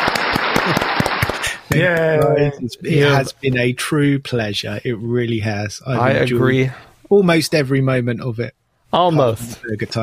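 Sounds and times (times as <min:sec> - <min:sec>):
small round of applause: 0:00.0 - 0:02.3
speech: 0:01.7 - 0:10.0.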